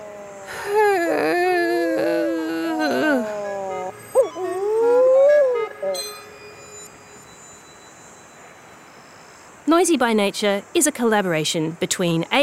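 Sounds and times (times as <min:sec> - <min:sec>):
mutton bird calling: 0:00.0 - 0:07.0
speech: 0:09.8 - 0:12.4.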